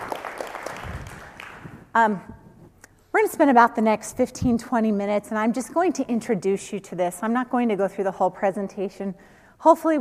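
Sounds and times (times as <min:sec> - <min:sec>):
audience applause in a presentation session: 0:00.0 - 0:01.7
speech: 0:02.0 - 0:02.4, 0:03.2 - 0:10.0.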